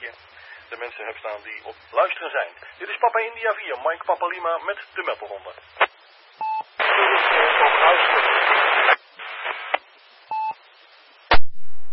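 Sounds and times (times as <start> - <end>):
distant radio station buried in heavy static: 0.0 - 11.9
speech: 0.2 - 8.7
short two-tone beeps: 10.3 - 10.6.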